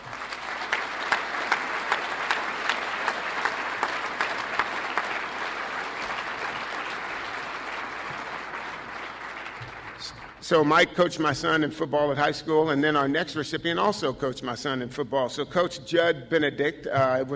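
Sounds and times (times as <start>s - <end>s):
audience applause: 0.0s - 10.5s
speech: 10.5s - 17.3s.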